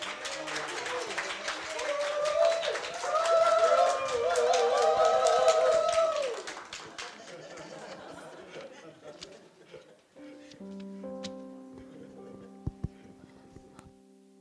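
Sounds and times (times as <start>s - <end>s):
audience clapping welcoming a speaker: 0.0s - 9.3s
laughter: 6.5s - 10.1s, 11.8s - 13.4s.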